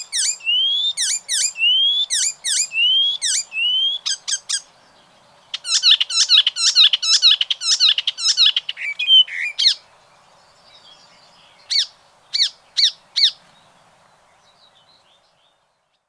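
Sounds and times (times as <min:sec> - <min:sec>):
bird calling: 0:00.0 - 0:09.8.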